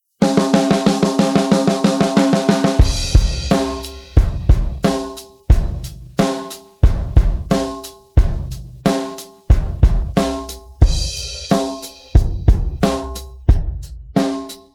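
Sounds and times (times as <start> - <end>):
drum pattern: 0.2 - 14.7.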